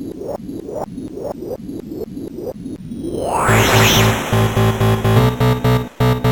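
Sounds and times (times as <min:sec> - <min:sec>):
techno buzz: 0:03.0 - 0:06.2.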